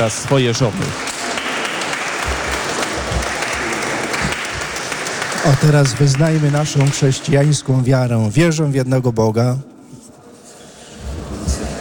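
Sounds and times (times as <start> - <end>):
speech: 0.0 - 1.1, 5.4 - 9.7
applause: 0.0 - 8.1.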